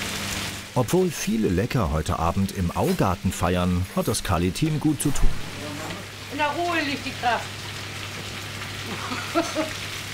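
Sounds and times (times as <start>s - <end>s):
schnitzel frying in a pan for a party service: 0.0s - 1.5s, 2.2s - 10.1s
speech: 0.8s - 5.5s, 6.3s - 7.6s, 8.9s - 9.9s
low hum: 4.5s - 6.2s.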